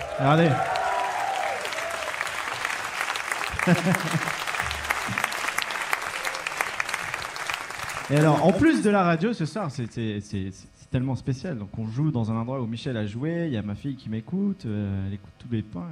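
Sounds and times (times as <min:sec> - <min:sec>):
scattered cheers and whoops: 0:00.0 - 0:02.7, 0:05.9 - 0:06.8
live crowd applauding: 0:00.0 - 0:08.9
speech: 0:00.2 - 0:00.7, 0:03.6 - 0:04.4, 0:08.1 - 0:15.9
laughter: 0:03.5 - 0:04.7.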